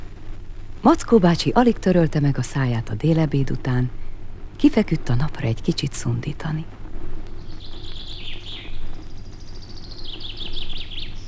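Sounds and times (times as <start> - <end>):
speech: 0.8 - 4.0, 4.6 - 6.8
great tits calling in a beech tree: 2.4 - 11.2.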